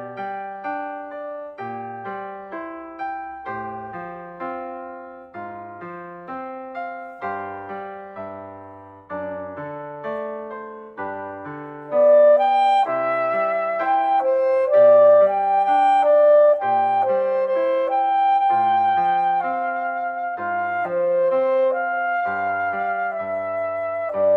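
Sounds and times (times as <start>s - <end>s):
slow clarinet solo: 11.8s - 24.3s.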